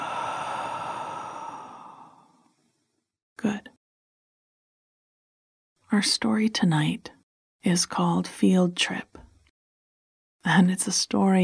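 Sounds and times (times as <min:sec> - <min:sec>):
deep exhale during a guided breathing exercise: 0:00.0 - 0:02.6
speech: 0:05.9 - 0:09.2, 0:10.4 - 0:11.4.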